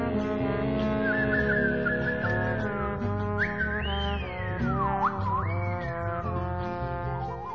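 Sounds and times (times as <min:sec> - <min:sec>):
instrumental backing music on record: 0:00.0 - 0:07.5
woman whistling a melody on record: 0:01.0 - 0:02.6, 0:03.4 - 0:05.9.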